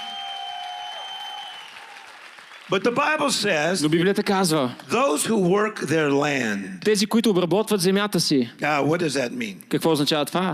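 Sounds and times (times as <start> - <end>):
audience clapping: 0.0 - 4.1
speech: 2.7 - 10.5.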